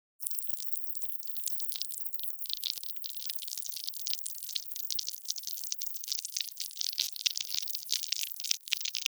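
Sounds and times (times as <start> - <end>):
sticky Venom symbiote squelch: 2.6 - 9.1.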